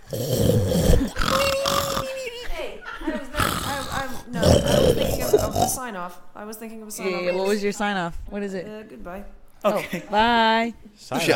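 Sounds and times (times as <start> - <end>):
voice imitating the snoring of a sleeping person: 0.0 - 2.3, 3.3 - 5.8
speech: 0.1 - 0.4, 5.8 - 11.3
laughter: 1.2 - 5.8.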